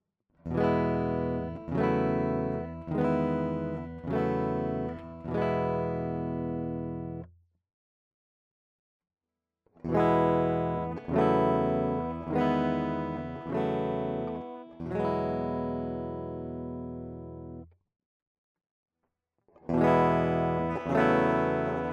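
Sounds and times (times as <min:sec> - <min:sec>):
ESP LTD TE 1000 DI guitar: 0:00.4 - 0:07.3, 0:09.8 - 0:17.7, 0:19.5 - 0:21.9.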